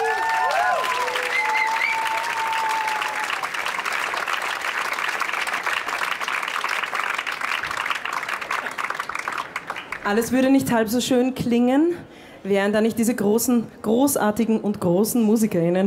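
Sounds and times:
crowd applauding: 0:00.0 - 0:10.1
whistles: 0:00.9 - 0:02.2
speech: 0:10.1 - 0:15.8.

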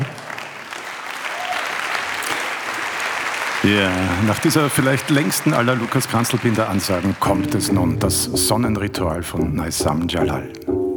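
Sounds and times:
audience applause: 0:00.0 - 0:08.0
speech: 0:03.6 - 0:10.7.

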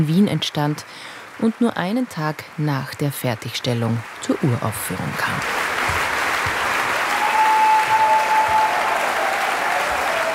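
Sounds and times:
speech: 0:00.0 - 0:06.0
concert audience applauding for an encore: 0:03.4 - 0:10.3.

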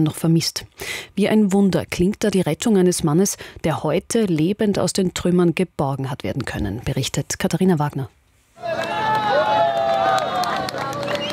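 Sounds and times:
speech: 0:00.0 - 0:08.9
crowd cheering and shouting at rubble rescue: 0:08.6 - 0:11.3.

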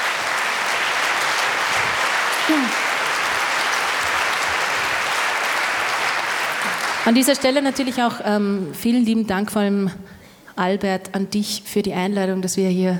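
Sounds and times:
audience applause: 0:00.0 - 0:08.2
faint vocal whoop: 0:02.4 - 0:02.9
speech: 0:02.5 - 0:02.8, 0:07.1 - 0:12.9.

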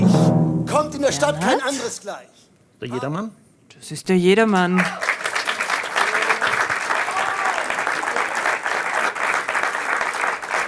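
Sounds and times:
speech: 0:00.8 - 0:05.0
audience applause: 0:04.7 - 0:10.6.

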